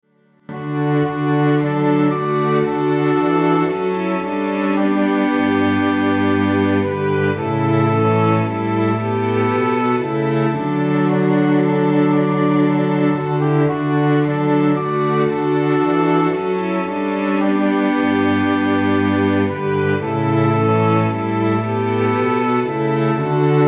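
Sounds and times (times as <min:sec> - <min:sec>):
MIDI soprano obbligato oboe melody: 0:00.5 - 0:23.6.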